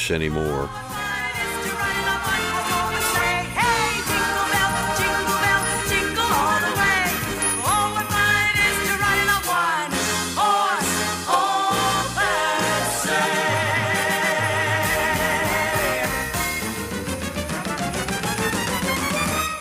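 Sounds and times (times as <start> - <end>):
rhythmic accompaniment with pulsing bass: 0.0 - 19.5
woman singing a Latin-inspired Christmas song on a variety show stage: 0.5 - 16.2.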